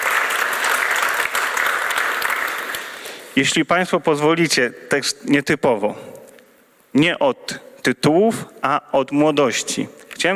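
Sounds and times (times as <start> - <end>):
audience applause: 0.0 - 3.3
speech: 3.4 - 6.1, 6.9 - 10.3.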